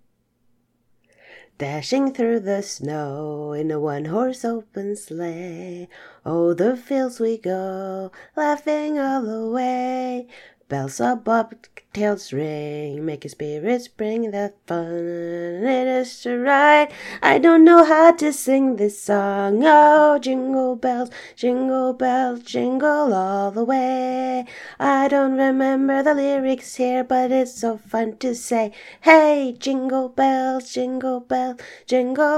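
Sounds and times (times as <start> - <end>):
person singing: 1.6 - 32.3.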